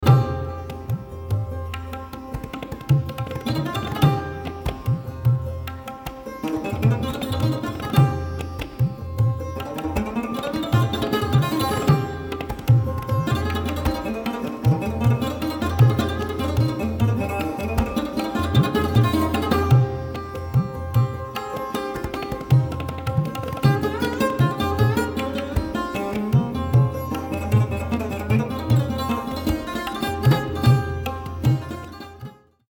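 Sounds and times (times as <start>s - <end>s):
Indian classical music in jhaptal and raga Bhairavi: 0.0s - 32.6s.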